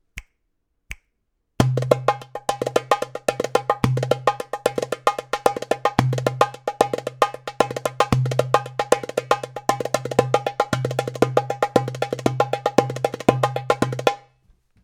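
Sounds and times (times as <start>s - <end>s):
darbuka playing wahda kebira rhythm: 1.6s - 14.3s.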